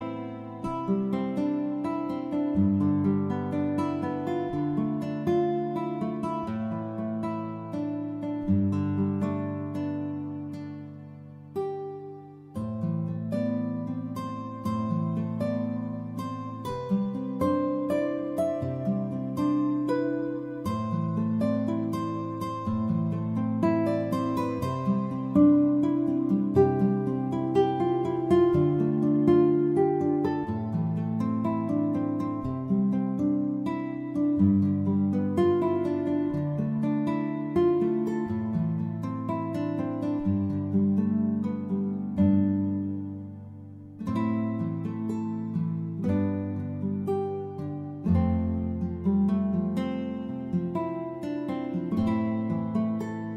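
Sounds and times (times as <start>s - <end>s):
guitar: 0.0s - 53.3s.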